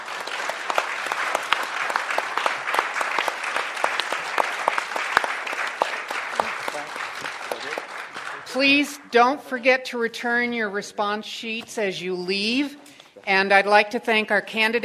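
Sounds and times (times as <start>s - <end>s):
audience applause: 0.0s - 9.1s
speech: 8.6s - 14.8s.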